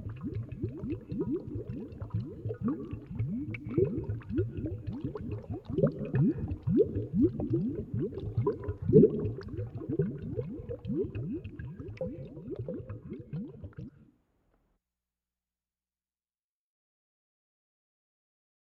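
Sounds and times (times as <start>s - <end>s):
heavy solution boiling: 0.0s - 13.9s.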